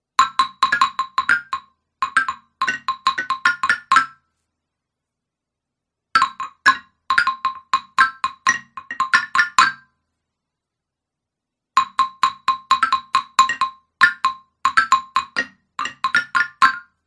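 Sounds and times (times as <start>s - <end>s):
xylophone: 0.2s - 4.2s, 6.2s - 9.9s, 11.8s - 17.0s.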